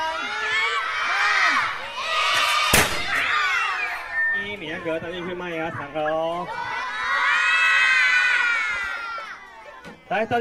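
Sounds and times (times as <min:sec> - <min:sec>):
crowd of children shouting and cheering: 0:00.0 - 0:10.1
rice puffing cannon bang: 0:02.7 - 0:03.2
speech: 0:04.8 - 0:06.7, 0:10.1 - 0:10.4.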